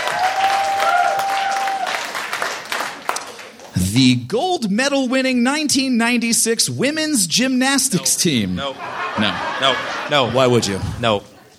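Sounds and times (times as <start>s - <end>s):
audience clapping: 0.0s - 3.9s
speech: 3.9s - 11.3s
laughter: 8.2s - 11.5s.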